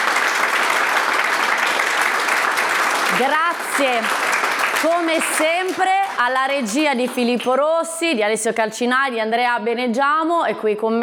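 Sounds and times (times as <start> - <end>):
applause: 0.0 - 7.8
speech: 3.2 - 4.2, 4.8 - 11.0.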